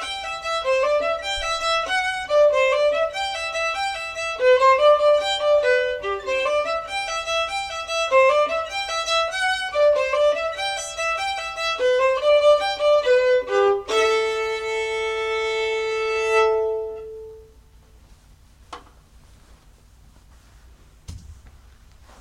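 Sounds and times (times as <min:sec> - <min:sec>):
fiddle tune: 0:00.0 - 0:17.6.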